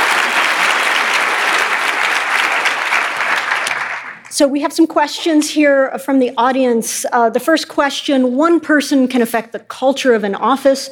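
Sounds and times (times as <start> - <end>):
audience applause for a speaker at a live talk: 0.0 - 4.3
speech: 4.4 - 10.9.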